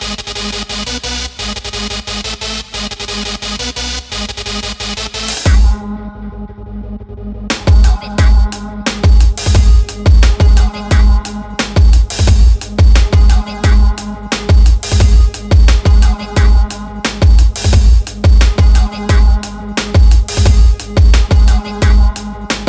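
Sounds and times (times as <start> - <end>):
gabba hop beat at 88 bpm: 5.5 - 5.8, 7.5 - 22.6.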